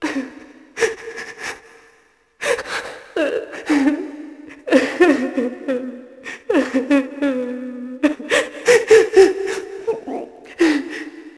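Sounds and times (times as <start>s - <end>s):
person crying: 3.2s - 10.4s.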